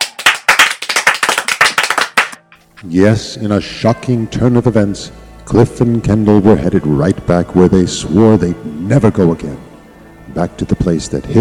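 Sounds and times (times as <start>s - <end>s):
audience clapping on cue from an applause sign at a show: 0.0s - 2.5s
speech: 2.8s - 9.7s, 10.4s - 11.3s.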